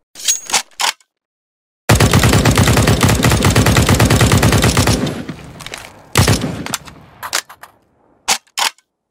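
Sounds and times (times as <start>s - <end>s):
SG 553 rifle gunshots: 1.9s - 7.3s.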